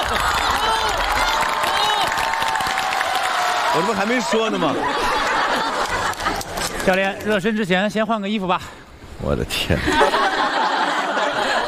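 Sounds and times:
laughter: 0.0 - 1.1, 3.8 - 7.6, 9.6 - 11.6
group clapping: 0.0 - 4.3, 5.1 - 7.5
people whooping and cheering: 0.0 - 6.5
speech: 3.8 - 5.8, 6.8 - 10.3.

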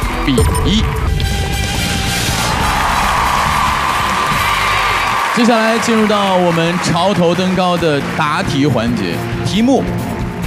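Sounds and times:
audience cheering: 0.0 - 9.2
speech: 0.2 - 1.0, 5.4 - 10.1
audience applause: 2.0 - 9.4.

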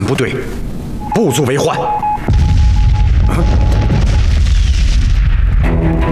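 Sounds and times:
speech: 0.1 - 0.6, 1.2 - 2.4
howitzer and field gun shell explosions: 2.2 - 6.1.

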